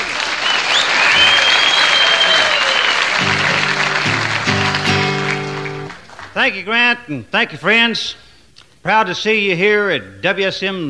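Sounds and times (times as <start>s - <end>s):
audience clapping welcoming a performer at the Grand Ole Opry: 0.0s - 6.6s
music chords: 3.2s - 6.0s
speech: 6.4s - 8.2s, 8.8s - 10.8s.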